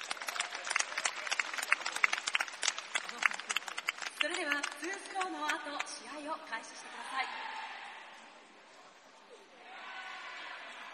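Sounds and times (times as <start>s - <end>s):
audience applause: 0.0s - 5.6s
speech: 4.2s - 7.6s.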